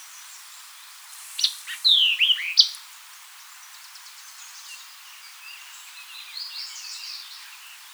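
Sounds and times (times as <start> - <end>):
White-eyed Vireo calling: 0.9 - 2.8.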